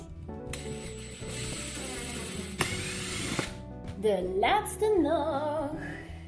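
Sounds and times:
mechanical whirring and ratcheting: 0.5 - 3.6
two small screws being driven in: 0.5 - 3.6
speech: 4.0 - 5.9.

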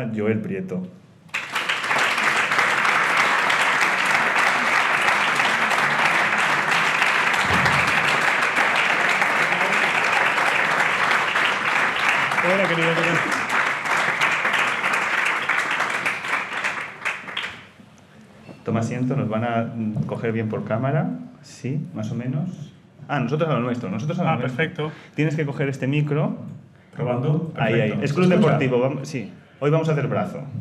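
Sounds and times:
speech: 0.0 - 1.0, 12.4 - 13.4, 18.7 - 30.5
audience applause: 1.3 - 17.7.

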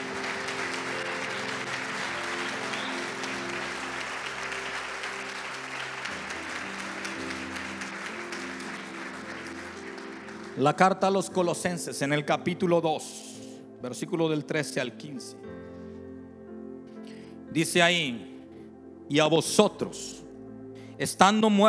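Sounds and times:
large crowd clapping: 0.0 - 11.6
sustained low musical tones humming: 0.0 - 21.6
speech: 10.6 - 15.5, 17.5 - 18.3, 19.1 - 20.2, 21.0 - 21.6.

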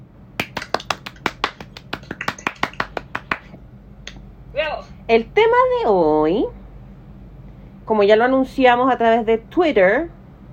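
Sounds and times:
applause: 0.4 - 3.5
speech: 5.1 - 6.6, 7.9 - 10.2.

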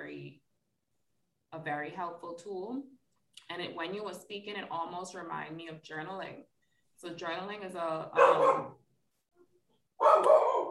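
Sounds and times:
speech: 1.6 - 8.8
dog barking: 8.2 - 8.8, 10.0 - 10.6.

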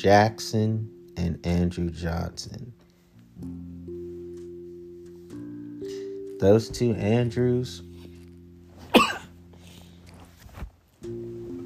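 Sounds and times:
speech: 0.0 - 2.8, 3.4 - 3.9, 6.4 - 7.9
breathy sound: 5.8 - 6.2, 9.4 - 10.3
person sneezing: 8.9 - 9.3.

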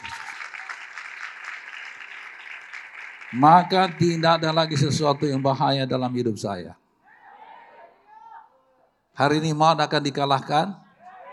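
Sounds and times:
audience giving loud applause: 0.0 - 5.9
speech: 3.3 - 6.8, 9.2 - 10.8.

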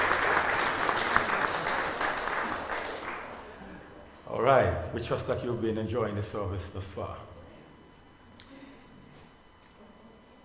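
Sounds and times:
audience round of applause: 0.0 - 3.8
speech: 4.4 - 7.3.

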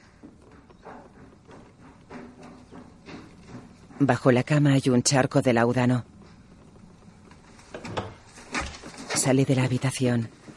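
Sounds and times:
speech: 4.0 - 6.1, 9.3 - 10.4
door closing: 7.6 - 9.2.

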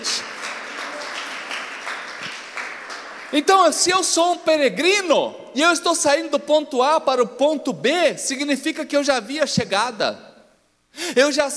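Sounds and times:
audience applause: 0.0 - 3.5
speech: 3.3 - 10.3, 11.0 - 11.5.

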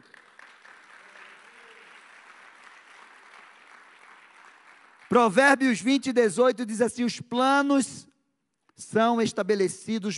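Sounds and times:
audience applause: 0.0 - 5.3
speech: 5.1 - 8.1, 8.8 - 10.1.

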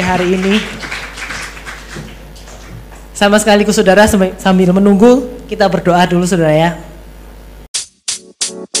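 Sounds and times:
audience applause: 0.0 - 2.8
speech: 0.1 - 0.9, 3.2 - 6.9.

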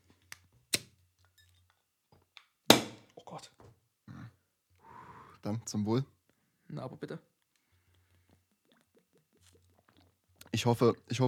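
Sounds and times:
beer bottle cap pop: 2.7 - 3.1
speech: 3.3 - 3.8, 5.4 - 7.3, 10.6 - 11.2.

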